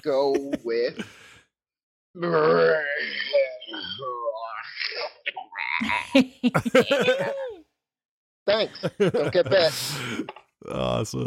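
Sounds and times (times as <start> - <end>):
laughter: 0.0 - 1.1, 5.8 - 7.6, 8.5 - 10.1
speech: 0.0 - 1.2, 2.1 - 4.2, 5.8 - 7.5, 8.5 - 11.2
voice imitating a zombie moaning and grunting: 2.2 - 4.7, 5.5 - 7.4.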